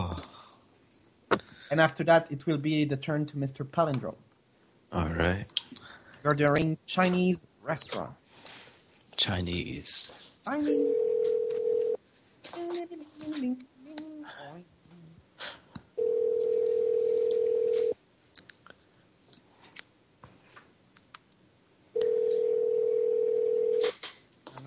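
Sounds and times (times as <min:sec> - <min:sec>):
speech: 0:01.7 - 0:04.3, 0:04.9 - 0:05.6, 0:06.2 - 0:08.2, 0:09.2 - 0:11.2, 0:13.4 - 0:13.7
telephone ring-back tone on a call to a Chinese restaurant: 0:10.7 - 0:12.0, 0:16.0 - 0:18.0, 0:22.0 - 0:23.8.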